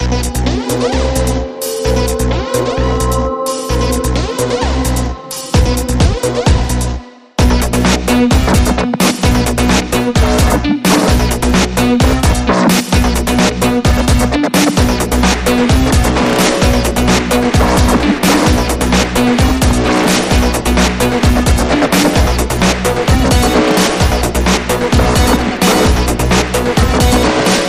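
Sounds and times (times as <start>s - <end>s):
bass: 0.0s - 27.6s.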